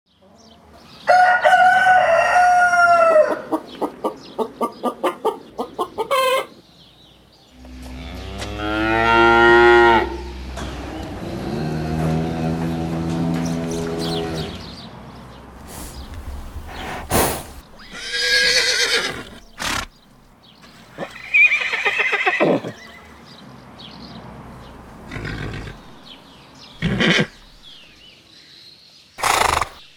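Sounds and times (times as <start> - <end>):
animals in a stable at Finca Palmira: 0.1 - 29.9.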